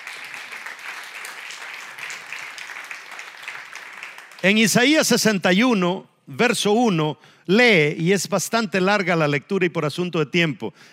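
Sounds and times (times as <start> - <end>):
audience applauding: 0.0 - 4.8
speech: 4.4 - 10.9.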